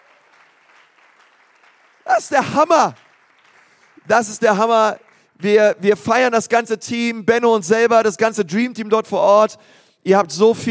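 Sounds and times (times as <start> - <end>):
audience applause: 0.0 - 5.3
speech: 2.2 - 3.0, 4.1 - 10.6.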